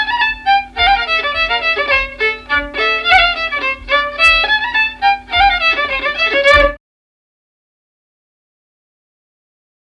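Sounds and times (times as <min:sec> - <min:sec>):
polka music: 0:00.0 - 0:06.8.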